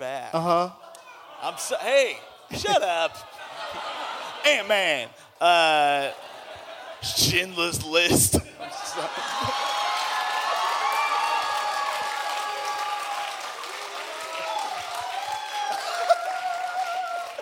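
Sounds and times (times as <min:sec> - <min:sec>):
speech: 0:00.3 - 0:00.8, 0:01.5 - 0:06.2, 0:07.0 - 0:09.5
laughter: 0:00.5 - 0:10.2, 0:15.6 - 0:17.4
audience cheering and applauding at a live comedy stage show: 0:00.9 - 0:05.1, 0:08.6 - 0:17.4.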